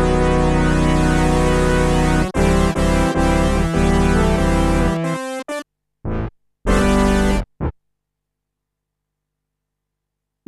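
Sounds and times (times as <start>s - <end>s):
Korg 05R/W saw, pulse and PWM waves: 0.0s - 5.5s, 6.1s - 7.7s.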